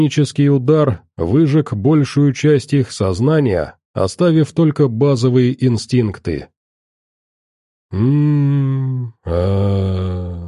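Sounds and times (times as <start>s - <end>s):
speech: 0.0s - 6.6s, 7.9s - 10.4s
people moaning in unison: 7.9s - 10.4s.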